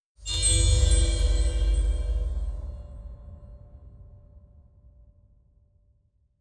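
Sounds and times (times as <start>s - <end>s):
bell: 0.2s - 3.9s.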